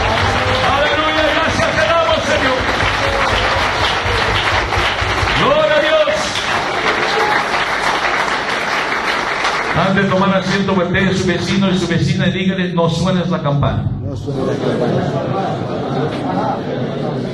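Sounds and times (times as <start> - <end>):
church audience cheering and shouting: 0.0 - 7.8
church service audience applauding: 0.0 - 10.7
speech: 10.3 - 17.3
laughter: 14.1 - 17.3.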